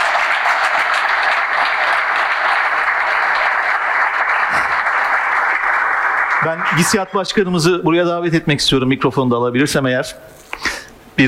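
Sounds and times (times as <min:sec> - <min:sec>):
audience applause: 0:00.0 - 0:07.6
speech: 0:06.4 - 0:10.4.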